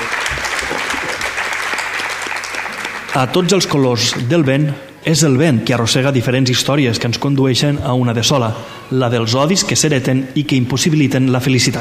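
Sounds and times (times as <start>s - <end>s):
audience applause after a book presentation: 0.0s - 4.3s
speech: 3.2s - 11.7s.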